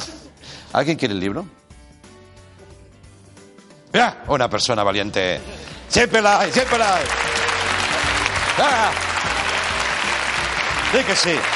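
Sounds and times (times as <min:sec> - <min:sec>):
speech: 0:00.7 - 0:01.6, 0:03.9 - 0:07.3, 0:08.6 - 0:09.1, 0:10.9 - 0:11.5
audience applause: 0:06.4 - 0:11.5.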